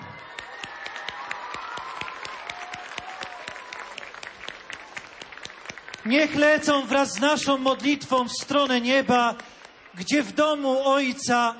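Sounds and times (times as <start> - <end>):
crowd applause: 0.0 - 7.6
speech: 6.1 - 11.5.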